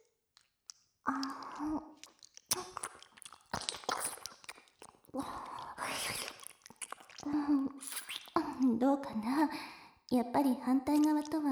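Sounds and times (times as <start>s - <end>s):
ASMR mouth clicks, smacks and biting of nibbling an ear: 0.3s - 8.7s, 10.9s - 11.4s
speech: 1.1s - 2.1s, 8.8s - 11.5s.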